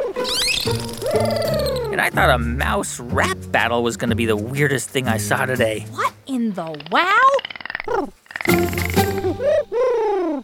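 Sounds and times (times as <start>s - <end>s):
bottlenose dolphin calls: 0.2s - 1.9s, 8.5s - 10.4s
speech: 1.2s - 8.8s.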